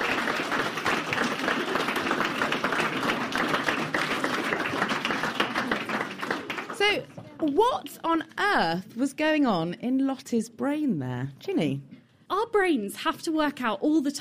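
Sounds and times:
audience round of applause: 0.0s - 7.6s
speech: 6.9s - 14.1s.

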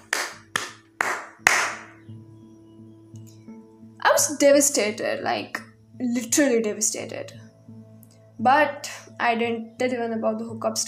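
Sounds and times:
slow clapping: 0.0s - 2.0s
speech: 4.2s - 7.4s, 8.4s - 10.8s.

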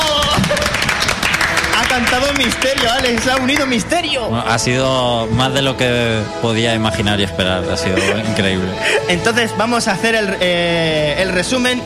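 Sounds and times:
crowd applause: 0.0s - 3.9s
speech: 2.0s - 11.8s
laughter: 7.8s - 9.2s.

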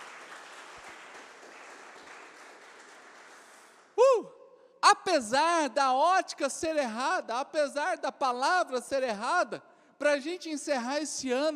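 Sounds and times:
audience applauding: 0.0s - 4.0s
speech: 5.0s - 11.5s.

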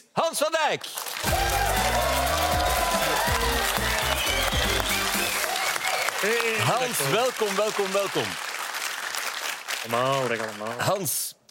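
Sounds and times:
speech: 0.3s - 1.6s, 6.2s - 8.5s, 9.8s - 11.4s
audience applause: 1.0s - 11.0s
audience cheering: 1.2s - 8.5s.

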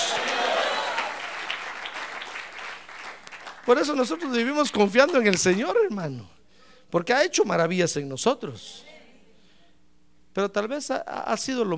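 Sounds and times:
audience applauding: 0.0s - 4.5s
speech: 3.7s - 8.9s, 10.4s - 11.7s.

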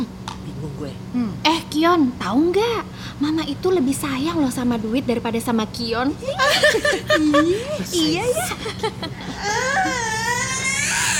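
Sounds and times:
speech: 0.8s - 10.2s
laughter: 6.2s - 10.4s
young child crying: 9.2s - 11.1s.

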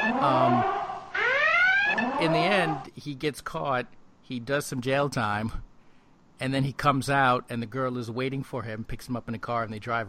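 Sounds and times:
siren sound effect: 0.0s - 2.9s
speech: 0.1s - 0.8s, 1.9s - 5.7s, 6.4s - 10.0s.

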